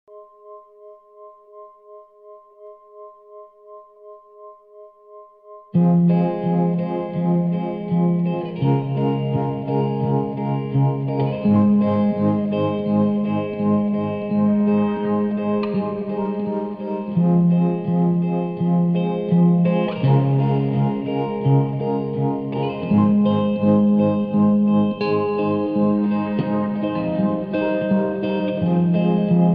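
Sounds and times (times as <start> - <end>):
instrumental music: 0.1 - 29.5.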